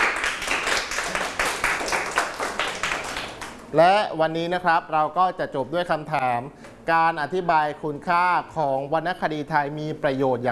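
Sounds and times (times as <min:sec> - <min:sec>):
classroom clapping for a student: 0:00.0 - 0:03.7
speech: 0:03.7 - 0:10.5.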